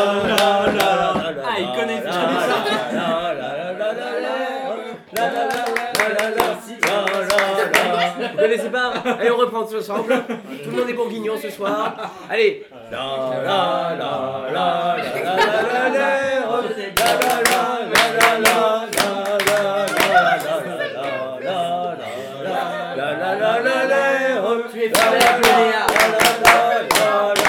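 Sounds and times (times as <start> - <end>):
loud rhythmic group handclaps: 0.0 - 3.2, 5.1 - 8.2, 16.3 - 21.3, 24.8 - 27.4
crowd singing a chanted folk tune: 0.0 - 9.3, 12.7 - 27.4
laughter: 1.1 - 12.4, 14.6 - 23.9, 25.0 - 27.4
speech: 8.1 - 19.2.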